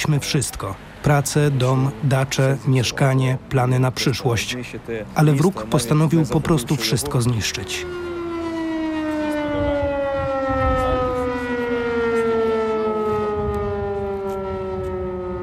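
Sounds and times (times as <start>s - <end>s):
speech: 0.1s - 8.1s
air raid alarm siren: 6.0s - 15.4s.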